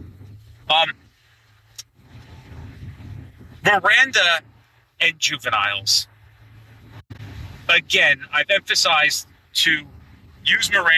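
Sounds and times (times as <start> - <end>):
car driving in traffic: 0.0 - 10.9
speech: 0.7 - 1.0, 3.6 - 6.1, 7.7 - 10.9.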